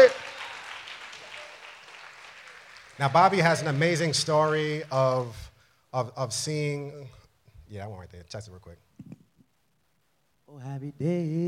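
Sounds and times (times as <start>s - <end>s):
audience clapping: 0.0s - 5.6s
speech: 3.0s - 9.2s, 10.5s - 11.4s.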